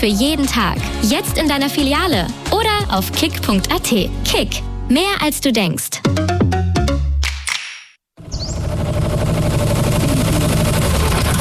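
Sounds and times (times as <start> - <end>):
speech: 0.0 - 6.5
new tractor engine: 8.3 - 11.4.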